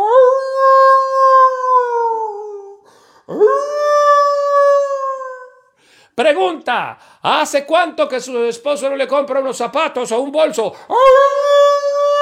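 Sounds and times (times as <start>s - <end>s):
women in a comedy show audience howling like wolves: 0.0s - 2.7s, 3.3s - 5.6s, 10.9s - 12.2s
speech: 6.2s - 11.4s.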